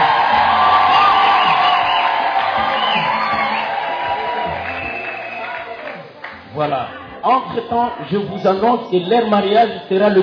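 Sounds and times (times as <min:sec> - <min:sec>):
crowd applauding and cheering: 0:00.0 - 0:06.6
speech: 0:07.6 - 0:10.2.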